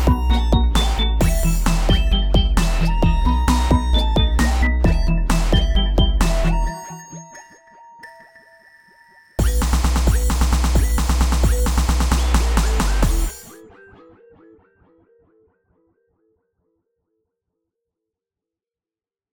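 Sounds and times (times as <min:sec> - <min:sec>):
techno music: 0:00.0 - 0:07.8, 0:09.4 - 0:13.6.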